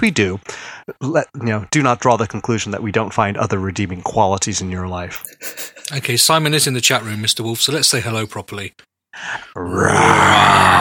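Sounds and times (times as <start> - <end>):
speech: 0.0 - 10.7
voice imitating a roar: 9.6 - 10.7.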